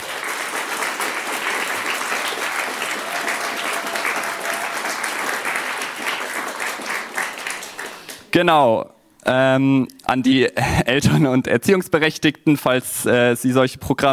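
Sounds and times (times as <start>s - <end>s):
audience applause: 0.0s - 8.3s
speech: 8.4s - 14.1s.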